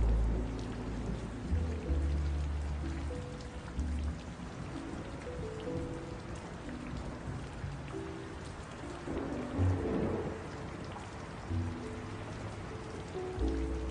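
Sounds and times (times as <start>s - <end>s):
ambient rainy city jazz music: 0.0s - 13.8s.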